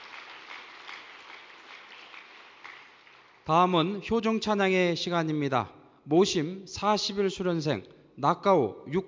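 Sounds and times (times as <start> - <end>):
audience applause: 0.0 - 3.4
speech: 3.5 - 9.0.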